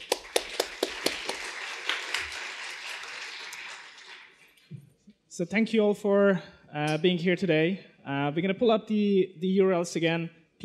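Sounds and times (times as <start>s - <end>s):
audience applause: 0.0s - 4.6s
speech: 5.4s - 10.6s.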